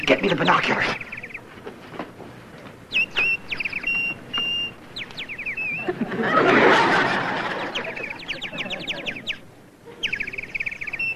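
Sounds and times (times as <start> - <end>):
Canadian crested warbler singing: 0.0 - 1.5, 2.8 - 6.0, 7.4 - 11.1
speech: 0.1 - 1.1
laughter: 5.8 - 10.2.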